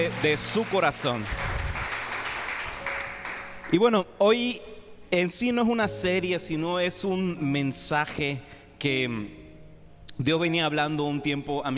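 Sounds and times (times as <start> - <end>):
speech: 0.0 - 1.6, 3.7 - 9.4, 10.2 - 11.7
crowd applause: 0.0 - 3.7.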